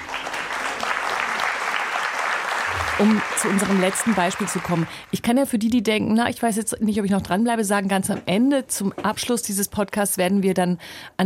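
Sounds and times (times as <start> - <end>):
live audience applause at a recorded talk event: 0.0 - 5.1
speech: 3.0 - 11.2.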